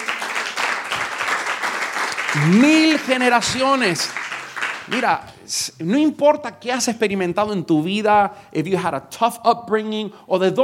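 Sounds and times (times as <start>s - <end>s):
church congregation applauding: 0.0s - 5.4s
speech: 2.3s - 4.2s, 4.9s - 10.6s.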